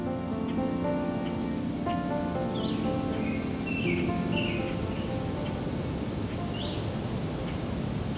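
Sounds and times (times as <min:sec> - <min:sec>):
American Redstarts, Nashville Warblers and Yellow-rumped Warblers singing: 0:00.0 - 0:08.0.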